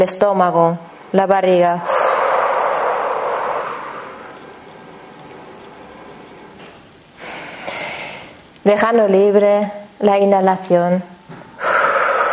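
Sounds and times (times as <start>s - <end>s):
speech: 0.0s - 1.9s, 8.7s - 11.1s
forceful exhalations: 1.8s - 4.4s, 7.2s - 8.4s, 11.5s - 12.3s.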